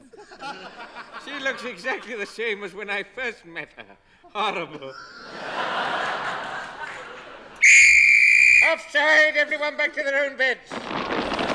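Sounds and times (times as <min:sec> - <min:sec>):
laughter: 0:00.0 - 0:02.4, 0:04.3 - 0:07.6
speech: 0:00.4 - 0:05.6, 0:08.7 - 0:11.0
danger warning whistle before blasting: 0:07.6 - 0:08.9.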